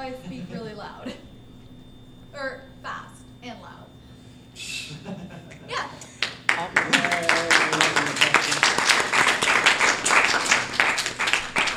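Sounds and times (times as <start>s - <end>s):
speech: 0.0s - 1.3s, 2.3s - 3.9s
laughter: 0.0s - 1.4s, 4.6s - 11.7s
audience applause: 6.1s - 11.7s.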